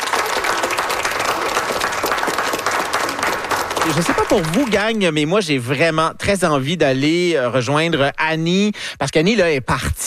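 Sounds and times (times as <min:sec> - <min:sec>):
audience applause: 0:00.0 - 0:05.1
speech: 0:03.9 - 0:10.0.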